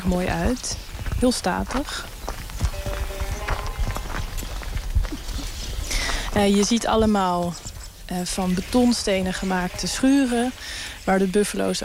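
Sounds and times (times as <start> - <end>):
speech: 0.0 - 2.1, 6.4 - 11.8
footsteps on dried mud with scattered straw: 0.0 - 11.8.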